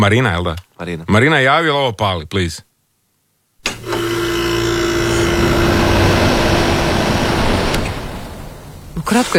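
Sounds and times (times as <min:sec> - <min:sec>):
speech: 0:00.0 - 0:02.7, 0:09.0 - 0:09.3
low electrical hum: 0:00.0 - 0:09.3
air conditioner running: 0:03.6 - 0:09.3.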